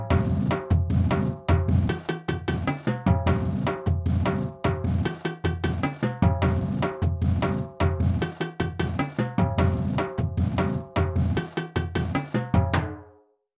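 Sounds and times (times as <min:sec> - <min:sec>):
music beat: 0:00.1 - 0:13.0.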